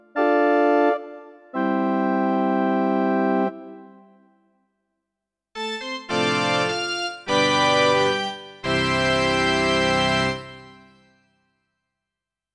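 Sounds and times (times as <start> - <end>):
organ: 0.0 - 3.8, 5.6 - 11.0.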